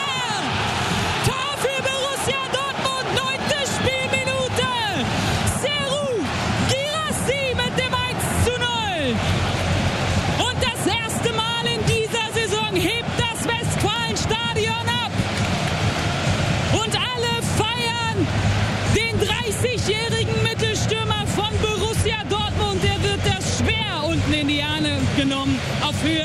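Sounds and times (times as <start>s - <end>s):
stadium crowd cheering and applauding after goal: 0.0s - 26.2s.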